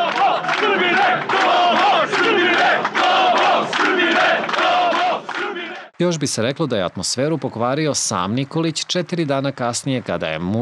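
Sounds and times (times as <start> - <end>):
large crowd chanting at a victory rally: 0.0 - 6.0
speech: 6.0 - 10.6.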